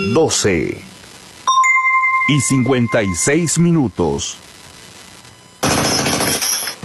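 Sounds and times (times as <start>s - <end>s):
speech: 0.1s - 0.9s, 2.3s - 4.5s
jackhammer pounding cement: 5.7s - 6.6s.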